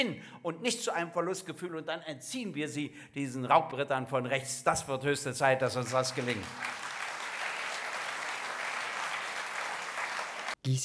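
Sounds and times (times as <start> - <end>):
speech: 0.0 - 6.8, 10.6 - 10.8
audience applause: 5.8 - 10.6.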